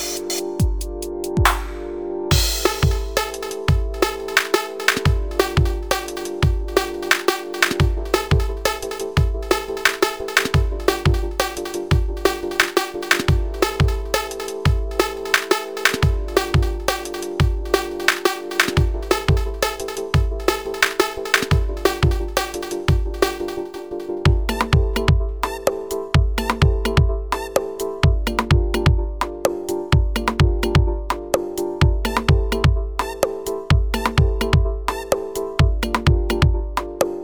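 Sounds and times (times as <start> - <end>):
drum machines: 0.0 - 25.6, 26.2 - 27.5, 28.1 - 29.4, 30.0 - 31.2, 31.8 - 35.0, 35.6 - 36.9.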